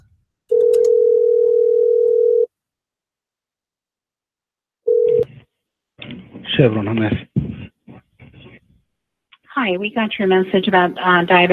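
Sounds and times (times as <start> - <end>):
telephone ringback tone: 0.5 - 2.5, 4.9 - 5.3
speech: 6.6 - 7.3, 9.6 - 11.5.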